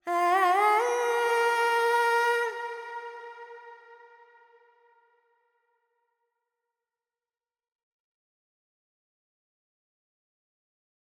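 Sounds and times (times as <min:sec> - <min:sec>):
Carnatic female vocal alaps in Dorian mode: 0:00.0 - 0:04.7.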